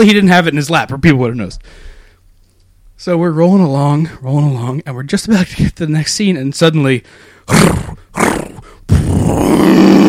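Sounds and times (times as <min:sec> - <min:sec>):
speech: 0:00.0 - 0:01.9, 0:03.0 - 0:08.4, 0:09.2 - 0:10.0
voice imitating a revving chainsaw: 0:07.5 - 0:10.0.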